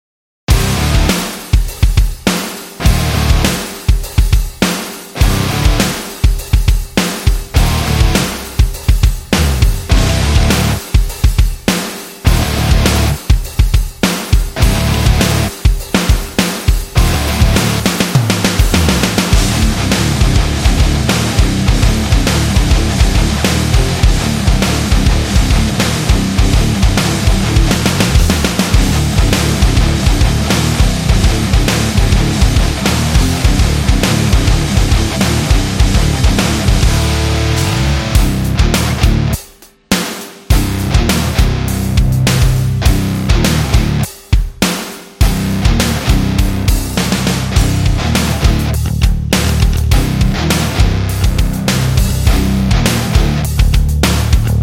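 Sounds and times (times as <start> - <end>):
angry metal music: 0.5 - 54.6.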